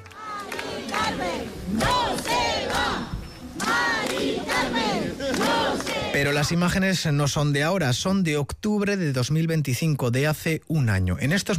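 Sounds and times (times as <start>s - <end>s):
clapping: 0.0s - 6.3s
crowd of demonstrators cheering and shouting: 0.0s - 6.3s
speech: 6.2s - 11.5s.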